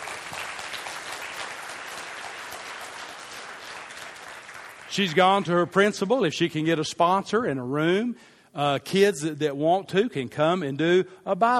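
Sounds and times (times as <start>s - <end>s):
congregation clapping during a church service: 0.0s - 6.2s
speech: 5.0s - 11.5s.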